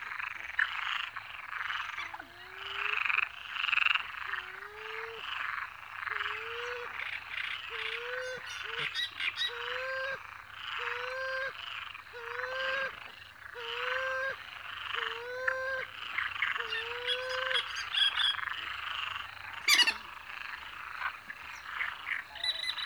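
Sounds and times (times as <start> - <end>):
frogs: 0.0 - 22.8
coots calling: 7.7 - 22.8
great marsh warblers singing: 16.1 - 22.8.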